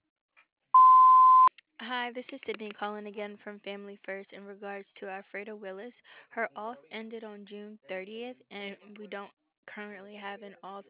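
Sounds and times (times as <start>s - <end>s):
voicemail answering machine tone: 0.8s - 1.5s
speech: 1.9s - 10.8s.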